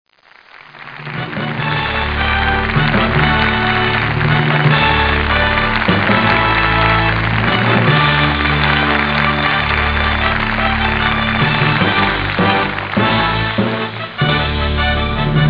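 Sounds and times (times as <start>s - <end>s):
finale music: 0.5s - 15.4s.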